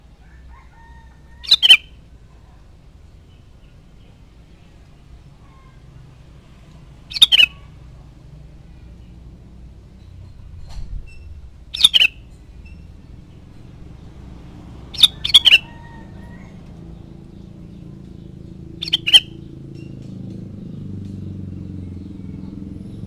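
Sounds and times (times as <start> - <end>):
sooty-headed bulbul chattering: 1.4 - 2.0, 7.0 - 8.1, 11.6 - 14.0, 14.8 - 20.0.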